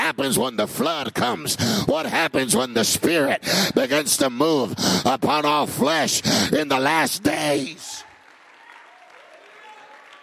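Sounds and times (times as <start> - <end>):
speech: 0.1 - 8.1
audience clapping: 7.2 - 10.2.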